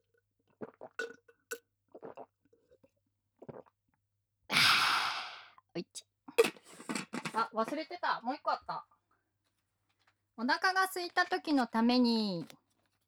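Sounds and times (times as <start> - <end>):
alcohol sipped and swallowed from a cup: 0.0 - 3.8, 6.4 - 7.4
long loud breathy exhaled sigh: 4.5 - 5.6
speech: 7.4 - 8.8, 10.4 - 12.6.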